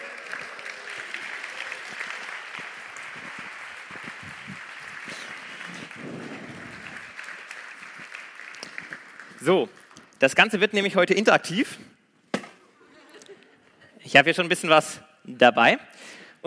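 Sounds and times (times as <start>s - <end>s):
audience clapping: 0.0s - 10.2s
speech: 9.4s - 11.9s, 14.1s - 16.4s.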